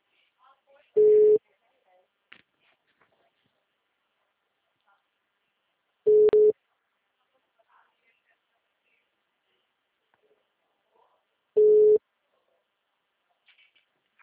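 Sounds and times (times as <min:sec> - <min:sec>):
phone line beeps while trying to call someone back: 0:01.0 - 0:01.4, 0:06.1 - 0:06.6, 0:11.6 - 0:12.0.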